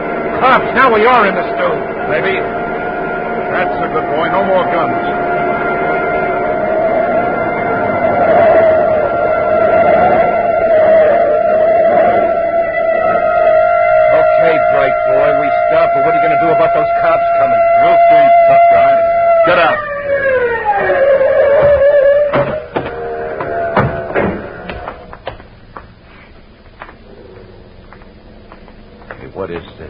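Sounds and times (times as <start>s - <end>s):
police siren wailing: 0.0s - 25.3s
speech: 0.4s - 2.6s, 3.5s - 5.3s
clattering noise: 20.8s - 29.8s.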